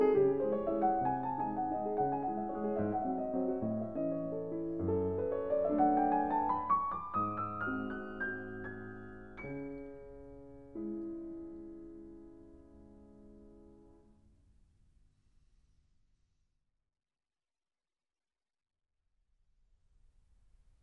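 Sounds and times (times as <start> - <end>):
waltz in C sharp minor: 0.0 - 14.0.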